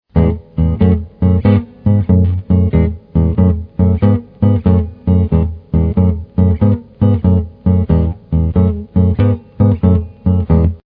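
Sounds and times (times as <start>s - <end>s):
blues guitar: 0.1s - 10.8s.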